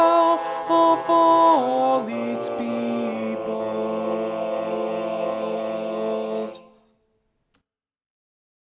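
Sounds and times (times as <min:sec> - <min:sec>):
tenor singing: 0:00.0 - 0:06.8.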